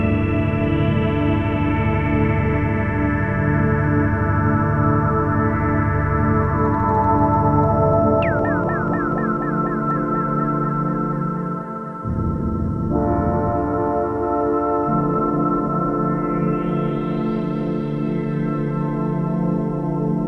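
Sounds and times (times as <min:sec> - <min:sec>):
DX7 synthesizer pad layered with a TX7 module with phasing effects: 0:00.0 - 0:20.1.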